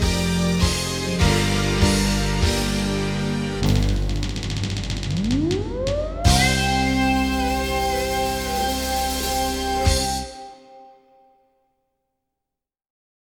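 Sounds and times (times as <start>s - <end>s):
instrumental fanfare: 0.2s - 11.0s.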